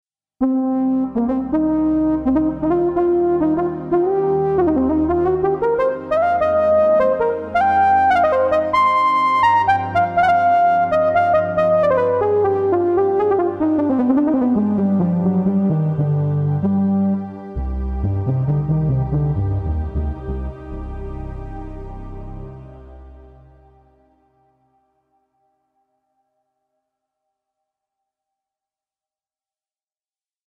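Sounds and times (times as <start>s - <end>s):
Behringer Kobol soft brass synthesizer JD990 patch: 0.4s - 25.0s.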